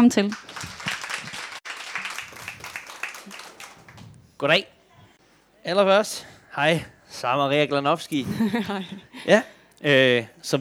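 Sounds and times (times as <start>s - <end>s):
speech: 0.0s - 0.5s, 4.4s - 4.7s, 5.6s - 10.5s
audience applause welcoming guests at a live author interview event: 0.2s - 4.1s
laughter: 8.2s - 9.4s.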